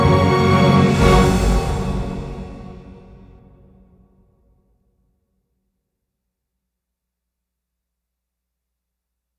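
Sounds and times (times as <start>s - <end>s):
music: 0.0s - 4.2s.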